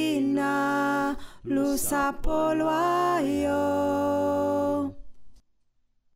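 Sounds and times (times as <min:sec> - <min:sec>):
alto choir singing: 0:00.1 - 0:04.9.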